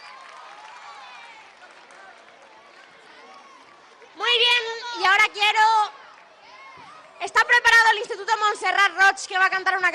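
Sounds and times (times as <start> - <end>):
crowd applauding: 0.0 - 6.6
voices cheering and shouting: 0.0 - 8.6
speech: 7.4 - 9.9.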